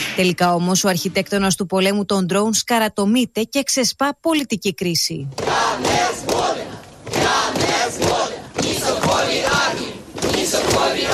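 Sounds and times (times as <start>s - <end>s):
speech: 0.2s - 8.2s
large protest crowd shouting and chanting in the streets: 5.4s - 11.1s.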